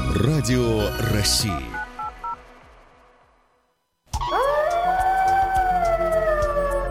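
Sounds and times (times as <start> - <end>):
speech: 0.2 - 1.7
wolf howling: 4.2 - 6.8.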